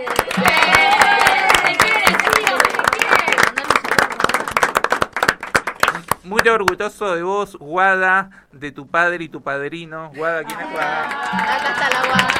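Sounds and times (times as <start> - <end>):
people cheering: 0.0 - 4.6, 10.2 - 12.3
audience applause: 0.0 - 6.2, 10.5 - 12.3
speech: 6.3 - 12.3.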